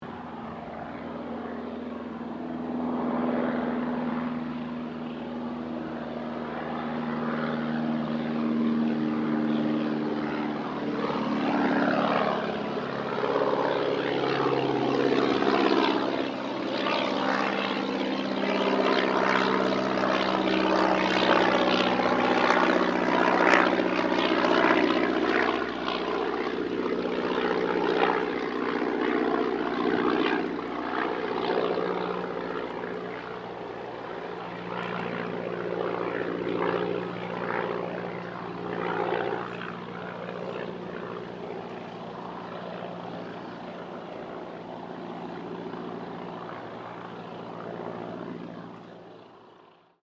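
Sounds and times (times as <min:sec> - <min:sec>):
de Havilland DH82A Tiger Moth aircraft passing: 0:00.0 - 0:50.0.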